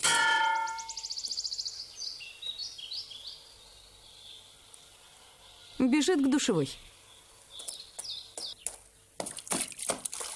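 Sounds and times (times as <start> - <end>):
metallic clang from something bumped into a metal crane hook: 0.0 - 1.0
high chirps: 0.4 - 2.2
speech: 5.8 - 6.9.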